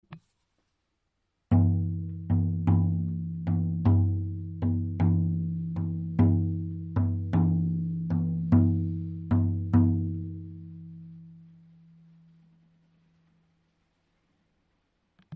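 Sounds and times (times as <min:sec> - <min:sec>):
speckled drum: 0:01.5 - 0:11.3.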